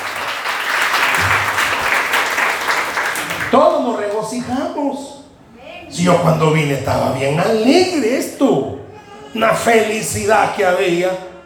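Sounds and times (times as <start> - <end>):
audience applause: 0.0 - 3.8
speech: 3.5 - 5.2, 5.9 - 11.3.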